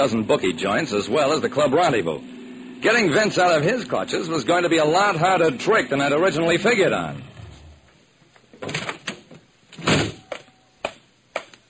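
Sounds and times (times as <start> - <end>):
speech: 0.0 - 7.3
front door opening: 7.2 - 10.5.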